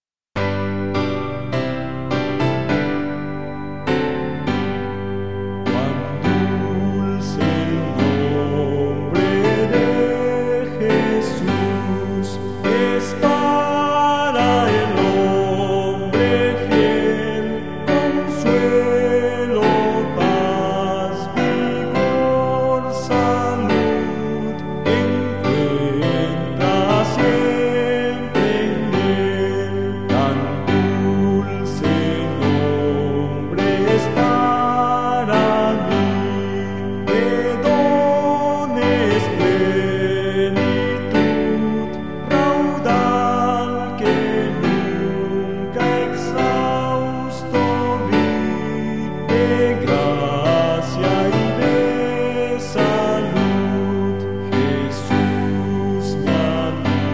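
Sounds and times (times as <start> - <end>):
hymn melody with words: 0.0 - 57.1.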